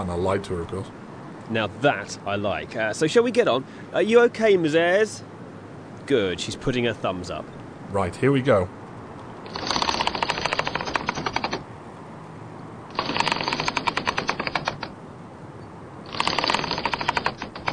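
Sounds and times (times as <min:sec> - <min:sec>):
speech: 0:00.0 - 0:05.3, 0:06.1 - 0:08.8
catapult being wound up with ratcheting clicks: 0:09.4 - 0:11.6, 0:12.9 - 0:15.0, 0:16.0 - 0:17.7.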